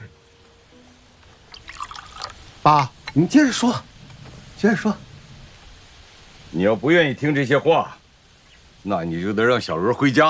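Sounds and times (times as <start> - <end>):
water pouring into a glass: 1.4 - 3.2
speech: 2.6 - 3.9, 4.6 - 5.0, 6.5 - 8.0, 8.8 - 10.2.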